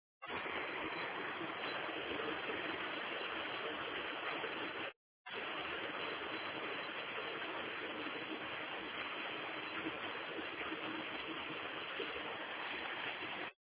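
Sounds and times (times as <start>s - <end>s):
rain in Gospić: 0.2s - 13.6s.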